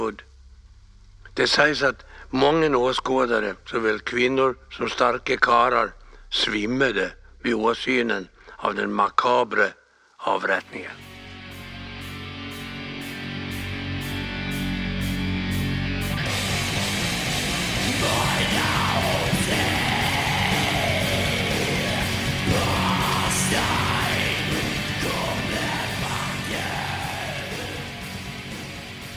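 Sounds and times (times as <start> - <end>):
speech: 0.0 - 0.3, 1.4 - 11.1
grinding black metal song: 10.6 - 29.1
harsh screamed vocals: 17.6 - 29.1.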